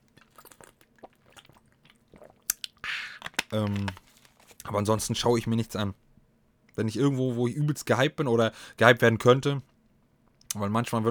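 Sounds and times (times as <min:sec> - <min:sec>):
person sipping a drink: 0:00.0 - 0:04.7
speech: 0:03.5 - 0:04.0, 0:04.7 - 0:06.0, 0:06.8 - 0:09.7, 0:10.6 - 0:11.0.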